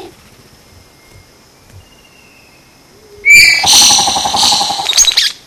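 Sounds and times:
Vogelkop bowerbird loud short sharp note: 0:03.3 - 0:05.1.

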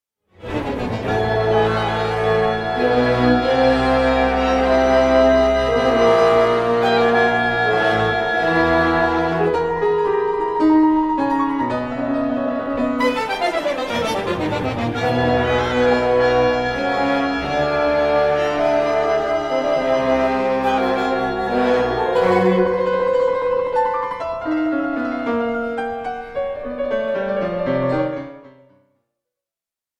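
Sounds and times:
piano: 0:00.3 - 0:29.0
ensemble of 12 instruments: 0:00.4 - 0:28.4.

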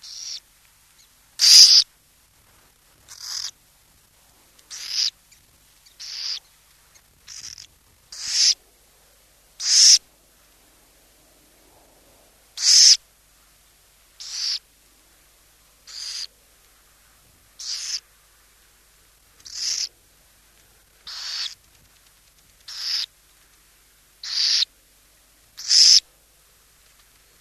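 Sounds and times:
burrowing owl giving harsh hissing rasps: 0:00.0 - 0:00.4, 0:01.4 - 0:01.8, 0:03.1 - 0:03.6, 0:04.7 - 0:05.2, 0:06.0 - 0:06.5, 0:07.3 - 0:08.6, 0:09.6 - 0:10.1, 0:12.6 - 0:13.0, 0:14.2 - 0:14.6, 0:15.9 - 0:16.3, 0:17.6 - 0:18.1, 0:19.4 - 0:19.9, 0:21.0 - 0:21.6, 0:22.7 - 0:23.1, 0:24.2 - 0:24.7, 0:25.6 - 0:26.1.

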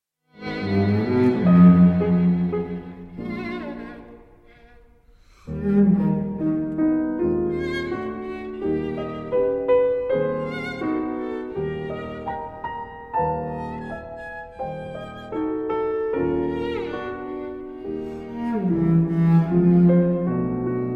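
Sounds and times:
piano trio playing variations on a Viennese Heurigen melody: 0:00.4 - 0:04.7, 0:05.3 - 0:20.9.

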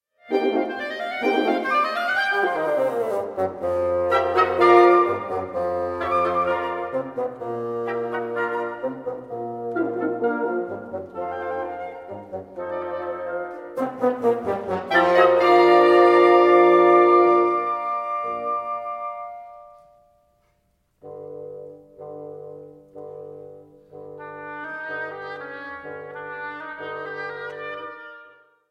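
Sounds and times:
suite for wind instruments: 0:00.3 - 0:20.0, 0:21.0 - 0:28.5.

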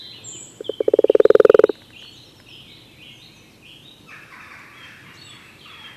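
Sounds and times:
common toad giving a rattling trill: 0:00.6 - 0:01.8.

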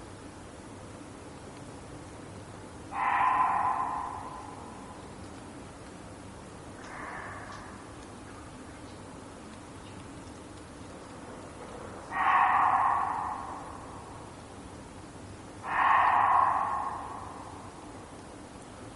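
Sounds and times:
Reeves's muntjac barking hoarsely: 0:02.9 - 0:05.4, 0:06.8 - 0:08.2, 0:11.5 - 0:14.7, 0:15.4 - 0:18.6.

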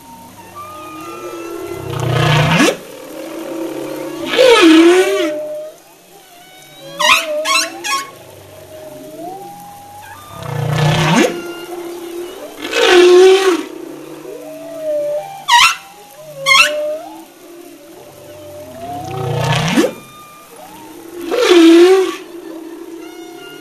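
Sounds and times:
humpback whale: 0:00.0 - 0:23.5.

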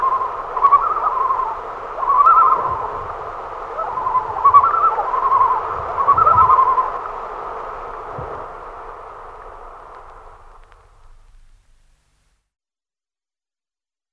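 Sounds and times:
common loon calling with whistles and tremolo: 0:00.0 - 0:07.4.

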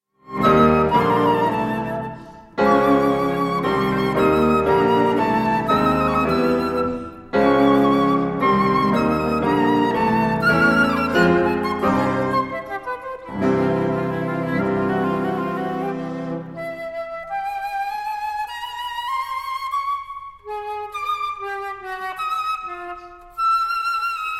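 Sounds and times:
trio for flute, cello and piano playing an allegro: 0:00.2 - 0:24.3.

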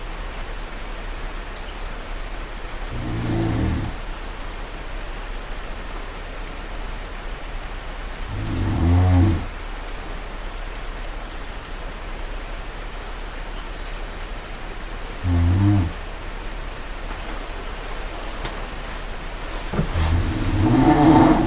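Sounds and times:
brown bear giving a low droning moan: 0:02.9 - 0:04.0, 0:08.3 - 0:09.5, 0:15.2 - 0:16.0, 0:19.7 - 0:21.4.

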